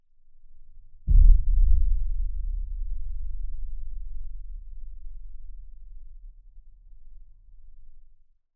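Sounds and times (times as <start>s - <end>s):
very deep metal boom from a geophone: 1.1s - 4.7s.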